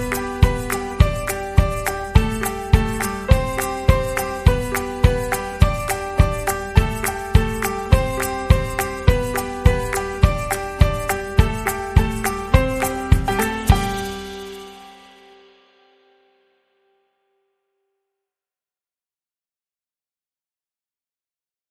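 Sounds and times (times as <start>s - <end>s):
kick drum: 0.0s - 14.6s
melody: 0.0s - 15.6s.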